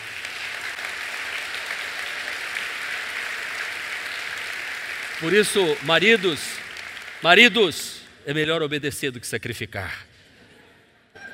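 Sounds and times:
audience applause: 0.0 - 8.1
speech: 5.2 - 6.6, 7.2 - 10.1.

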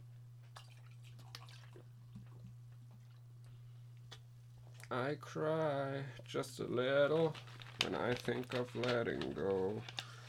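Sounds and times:
low electrical hum: 0.0 - 10.2
drink being poured: 0.5 - 3.2
speech: 4.9 - 10.0.

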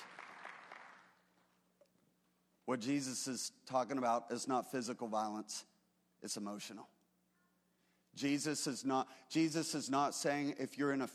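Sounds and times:
faint audience applause: 0.0 - 1.1
speech: 2.7 - 7.0, 8.2 - 11.1.

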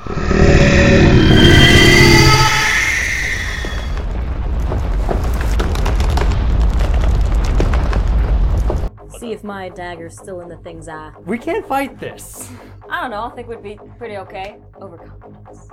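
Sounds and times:
roar of a building collapsing: 0.0 - 8.9
speech: 9.5 - 15.7.

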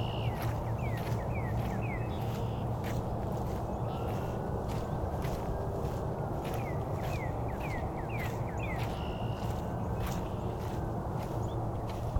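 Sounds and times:
Red-winged blackbirds and other birds singing: 0.0 - 12.1.

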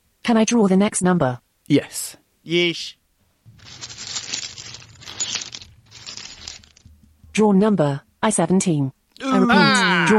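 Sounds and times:
speech: 0.3 - 3.0, 7.4 - 10.1
paper being unwrapped during a bingo game, rustling and tearing: 3.6 - 6.8.

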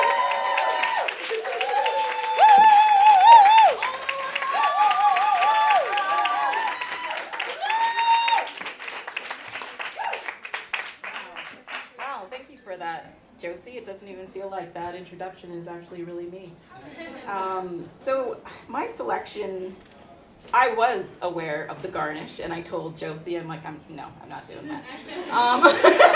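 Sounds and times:
audience cheering: 0.0 - 10.5
audience applause: 0.0 - 12.1
speech: 15.0 - 19.9, 20.5 - 26.1
laughter: 24.8 - 26.1.

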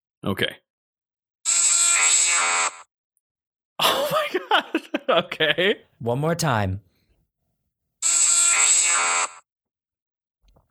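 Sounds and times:
speech: 0.2 - 0.6, 5.1 - 6.9
Electabuzz Pokémon cry, buzzing electronic screech: 1.5 - 2.9, 8.0 - 9.4
laughter: 3.8 - 5.8.

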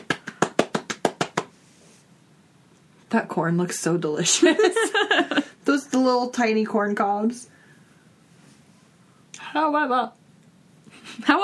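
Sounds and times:
fast hand clapping in a film scene: 0.0 - 1.6
speech: 3.1 - 7.5, 9.6 - 10.2, 11.3 - 11.4.

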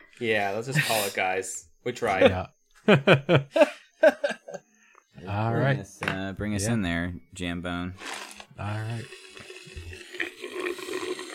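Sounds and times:
speech: 0.1 - 4.6, 5.2 - 9.2
laughter: 2.0 - 4.7
slurping a Slurpee icy drink through a straw: 8.0 - 11.3.

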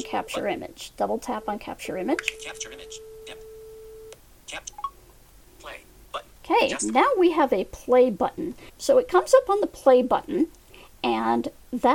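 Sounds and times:
speech: 0.1 - 3.4, 4.5 - 4.8, 6.5 - 11.9
irregular electronic beeping from a phone app: 2.2 - 5.0.

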